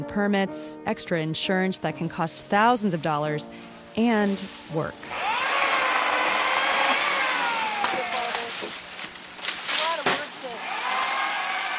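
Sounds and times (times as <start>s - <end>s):
speech: 0.0s - 5.4s
chainsaws cutting tree branches: 4.2s - 11.7s.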